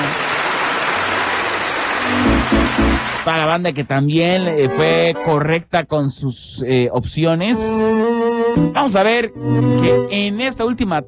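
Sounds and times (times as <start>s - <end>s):
audience applause: 0.0s - 3.5s
speech: 3.2s - 11.0s.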